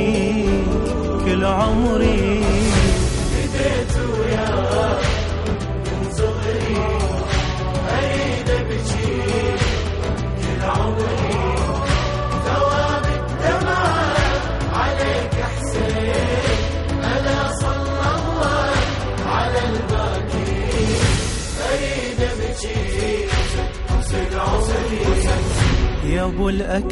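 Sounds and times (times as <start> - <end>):
Arabic nawha chant: 0.2 - 26.8.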